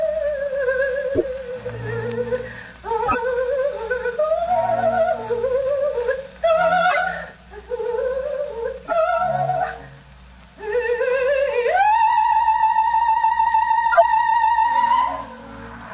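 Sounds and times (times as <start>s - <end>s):
soprano singing an opera aria: 0.0s - 10.0s, 10.6s - 15.8s.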